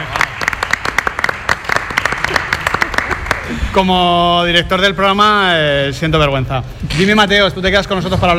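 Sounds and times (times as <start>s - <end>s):
studio applause for a radio show contributor: 0.0s - 3.8s
speech: 3.5s - 8.3s.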